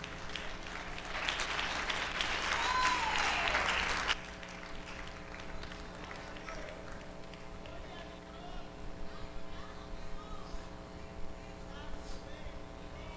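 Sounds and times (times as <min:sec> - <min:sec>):
audience applause: 0:00.0 - 0:08.1.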